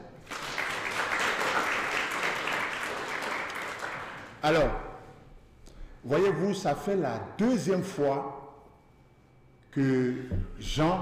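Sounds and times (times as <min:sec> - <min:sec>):
crowd applause: 0:00.0 - 0:04.4
speech: 0:04.4 - 0:04.8, 0:06.0 - 0:08.4, 0:09.8 - 0:11.0.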